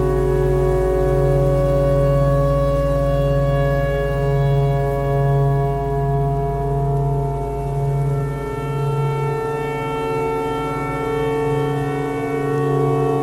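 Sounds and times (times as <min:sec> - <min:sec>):
tornado siren: 0:00.0 - 0:13.2.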